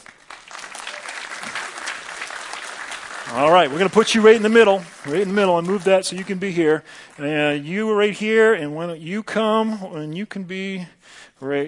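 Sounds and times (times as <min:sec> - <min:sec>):
Grace Community Church congregation applauding: 0:00.0 - 0:07.6
speech: 0:03.3 - 0:11.6.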